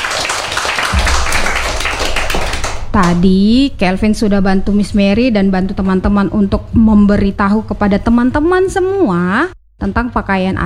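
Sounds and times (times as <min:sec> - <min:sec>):
children clapping hands: 0:00.0 - 0:02.8
speech: 0:02.9 - 0:10.6.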